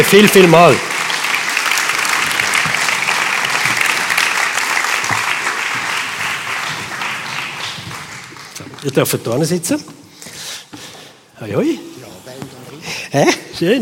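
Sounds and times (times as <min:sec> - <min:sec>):
speech: 0:00.0 - 0:00.9, 0:08.8 - 0:10.0, 0:11.4 - 0:12.5, 0:13.1 - 0:13.7
audience applause welcoming guests on stage: 0:00.0 - 0:09.2.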